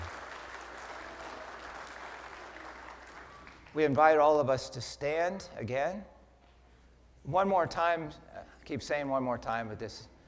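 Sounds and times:
audience applause: 0.0 - 3.7
speech: 3.7 - 6.1, 7.2 - 10.1.

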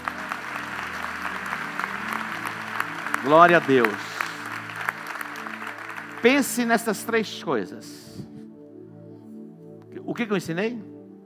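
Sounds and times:
audience applauding: 0.0 - 7.2
speech: 3.2 - 4.1, 6.2 - 8.0, 10.1 - 10.9.

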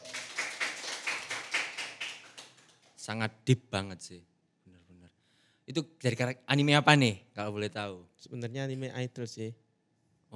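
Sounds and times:
audience clapping: 0.0 - 3.1
speech: 3.1 - 4.3, 5.7 - 9.6.

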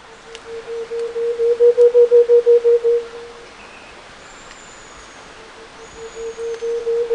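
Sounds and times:
variegated antpitta low call of deep hollow hoots: 0.2 - 3.5, 5.4 - 7.1.

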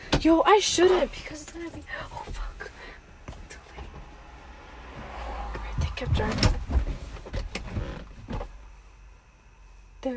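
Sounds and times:
speech: 0.2 - 2.4, 6.0 - 6.6
car seat being slid back: 5.0 - 8.6.

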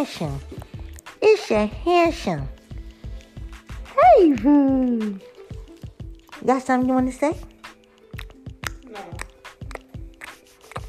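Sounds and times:
speech: 0.0 - 2.6, 4.1 - 5.3, 6.4 - 7.5
baby making wet chomping and chewing sounds: 0.4 - 1.5, 2.5 - 6.5, 7.4 - 10.8.

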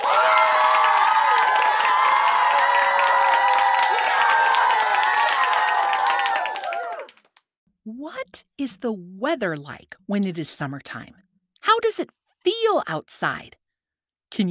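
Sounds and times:
bright cheering voices: 0.0 - 7.2
steady clapping: 0.0 - 7.4
speech: 8.6 - 13.6.

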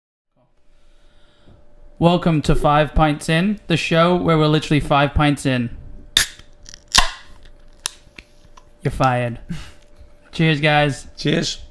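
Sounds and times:
speech: 2.0 - 5.8, 8.8 - 9.8, 10.4 - 11.6
beer can being opened: 6.2 - 8.0.

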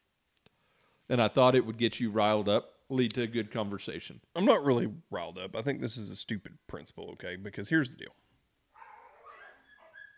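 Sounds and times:
speech: 1.1 - 8.2
dog whimpering in high wavering whines: 8.8 - 10.1.

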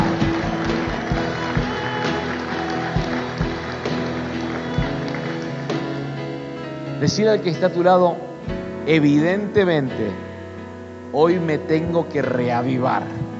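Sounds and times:
audience applauding: 0.0 - 6.4
speech: 7.0 - 10.2, 11.1 - 13.3.

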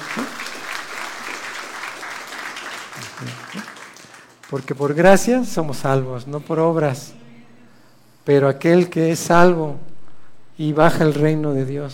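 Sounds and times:
audience applause: 0.0 - 5.0
speech: 4.5 - 7.2, 8.2 - 9.9, 10.6 - 11.9.

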